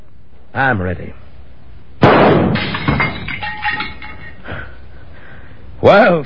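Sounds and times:
speech: 0:00.5 - 0:01.2, 0:05.8 - 0:06.2
gunshot in a duel: 0:02.0 - 0:03.0
candle holder breaking into clattering glassy debris: 0:02.5 - 0:04.5.

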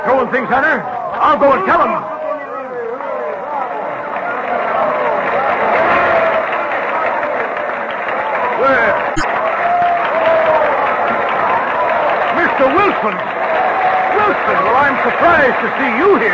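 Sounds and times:
speech: 0:00.2 - 0:02.2, 0:08.6 - 0:09.4, 0:12.6 - 0:13.3, 0:14.3 - 0:16.3
large theatre audience cheering and applauding: 0:03.1 - 0:16.3.

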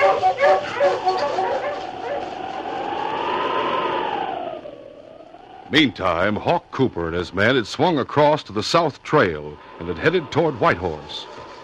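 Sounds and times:
sled huskies barking: 0:00.0 - 0:04.6
husky howling: 0:00.0 - 0:06.3
speech: 0:05.7 - 0:11.3.

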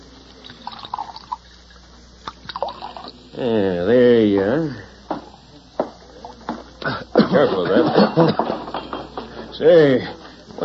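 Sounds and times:
low steady hum: 0:00.0 - 0:10.6
drink poured from a bottle into a glass at a bar: 0:00.3 - 0:03.2
speech: 0:03.4 - 0:04.9, 0:09.6 - 0:10.6
laughter: 0:06.8 - 0:08.8.

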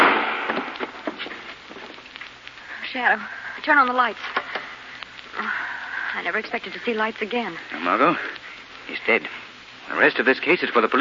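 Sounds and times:
gunshot sound effect in a radio detective drama: 0:00.0 - 0:01.2
speech: 0:02.9 - 0:04.4, 0:06.2 - 0:10.9.

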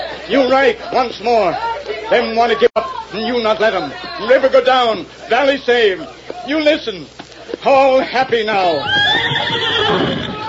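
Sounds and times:
speech: 0:00.3 - 0:10.2
horse whinnying: 0:08.8 - 0:10.4.

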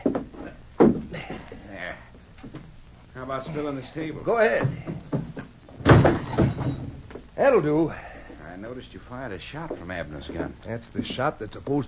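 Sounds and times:
wooden chair kicked over in a radio drama fight scene: 0:00.0 - 0:01.3, 0:04.6 - 0:07.2
speech: 0:03.2 - 0:05.0, 0:07.4 - 0:11.8.

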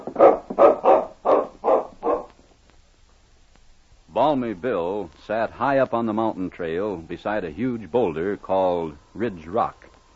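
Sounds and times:
dog barking: 0:00.0 - 0:02.4
speech: 0:04.3 - 0:09.8.

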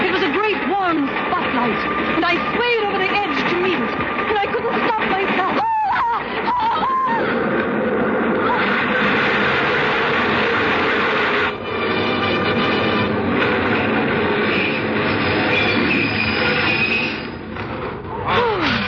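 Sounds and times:
train rushing past through station: 0:00.0 - 0:18.8.

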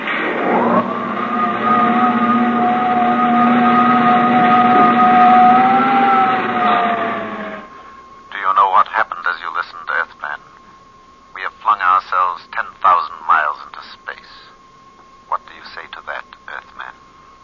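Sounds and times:
spaceship jet dynamos humming: 0:00.0 - 0:17.4
person speaking: 0:08.3 - 0:10.5, 0:11.4 - 0:14.6, 0:15.3 - 0:17.0.

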